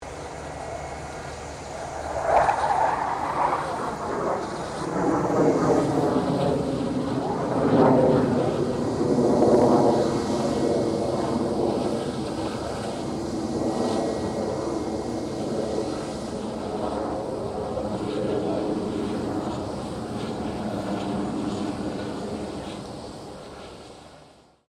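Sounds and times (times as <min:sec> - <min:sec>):
1997 BAE Hawk 127 jet passing: 0:00.0 - 0:24.6.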